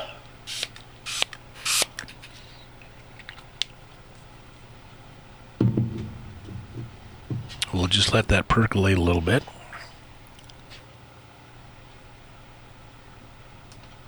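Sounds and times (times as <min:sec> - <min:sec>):
Nutribiotic throat spray pump bottle hissing: 0:00.5 - 0:01.9
low thump: 0:05.6 - 0:08.0
speech: 0:07.8 - 0:09.6.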